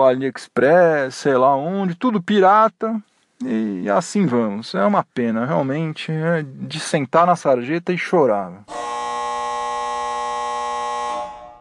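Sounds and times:
speech: 0.0s - 8.9s
basketball end-of-game buzzer: 8.7s - 11.5s.

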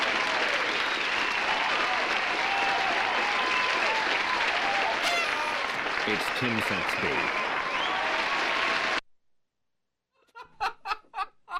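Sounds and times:
crowd cheering and applause: 0.0s - 9.0s
speech: 6.1s - 7.4s
laughter: 10.2s - 11.5s.

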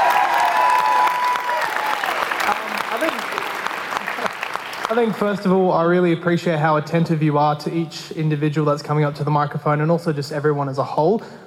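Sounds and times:
audience applause: 0.0s - 5.4s
speech: 4.9s - 11.4s.

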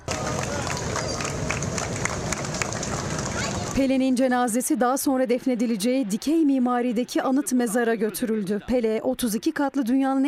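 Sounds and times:
crowd applauding along funeral procession route: 0.0s - 4.0s
speech: 3.8s - 10.2s.

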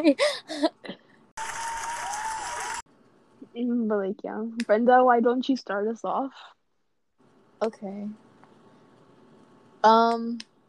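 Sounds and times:
speech: 0.0s - 1.0s, 3.6s - 6.6s, 7.6s - 8.2s, 9.8s - 10.5s
applause sound effect: 1.4s - 2.8s.

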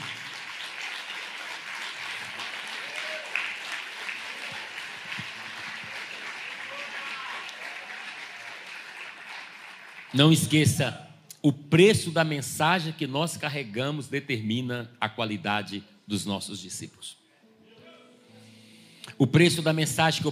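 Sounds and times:
audience applause: 0.0s - 10.4s
speech: 10.1s - 17.2s, 19.2s - 20.3s.

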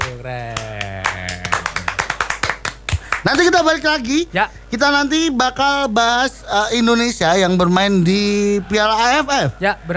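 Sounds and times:
people clapping for a guest during a talk show segment: 0.0s - 3.5s
low hum: 0.0s - 9.9s
speech: 0.1s - 0.6s, 3.3s - 9.9s.

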